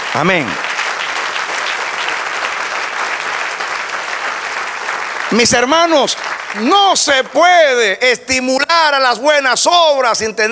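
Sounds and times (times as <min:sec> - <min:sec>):
audience applause: 0:00.0 - 0:07.8
speech: 0:00.2 - 0:00.6, 0:05.3 - 0:10.5.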